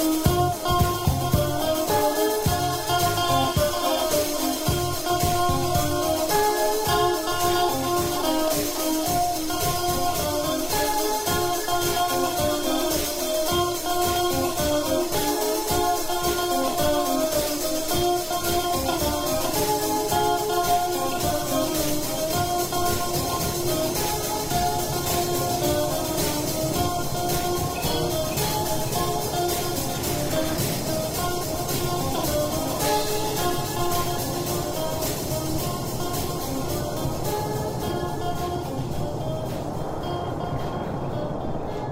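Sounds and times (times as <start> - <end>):
rain falling: 0.0 - 41.9.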